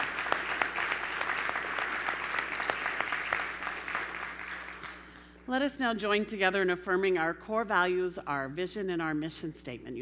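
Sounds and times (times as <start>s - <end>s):
audience applauding: 0.0s - 5.2s
speech: 5.5s - 10.0s.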